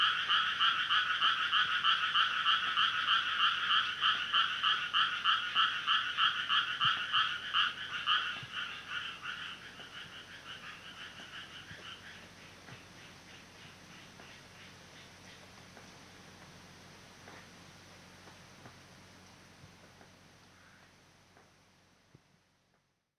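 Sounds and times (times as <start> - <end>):
frog chorus: 0.0 - 16.4.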